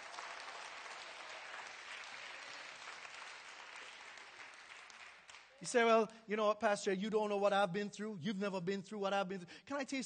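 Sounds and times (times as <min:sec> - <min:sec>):
audience clapping hands: 0:00.0 - 0:05.8
speech: 0:05.6 - 0:10.0.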